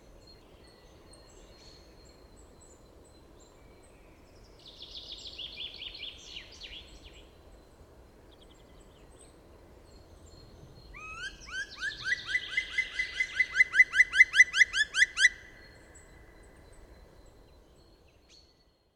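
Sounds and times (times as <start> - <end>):
black woodpecker ringing call series: 11.0 - 15.6.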